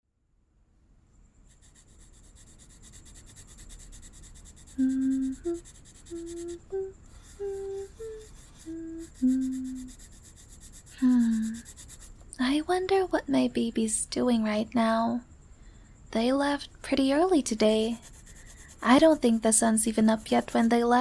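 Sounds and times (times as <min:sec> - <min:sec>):
sketching on paper: 0:01.5 - 0:12.2, 0:17.6 - 0:20.9
speech: 0:04.8 - 0:06.3, 0:12.7 - 0:15.3, 0:16.2 - 0:18.1, 0:18.8 - 0:20.9.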